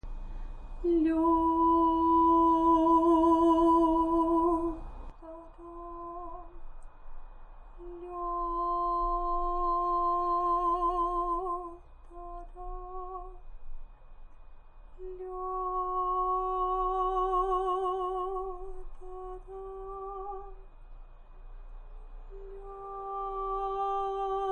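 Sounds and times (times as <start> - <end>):
person singing without piano: 0.8 - 6.6, 7.8 - 13.4, 15.0 - 20.6, 22.3 - 24.5.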